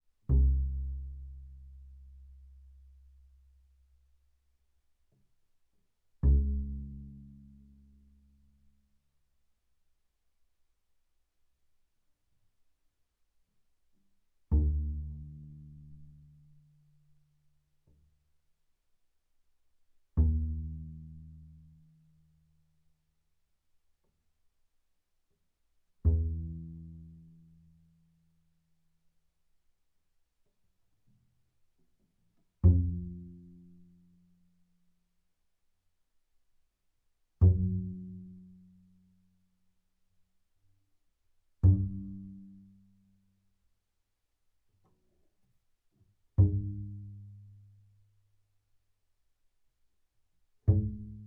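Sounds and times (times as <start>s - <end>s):
double bass pizzicato on the E string fortissimo: 0.2s - 3.7s, 6.2s - 8.3s, 14.5s - 16.8s, 20.1s - 22.4s, 26.0s - 28.0s, 32.5s - 34.4s, 37.4s - 39.2s, 41.6s - 43.0s, 46.3s - 48.1s, 50.6s - 51.2s.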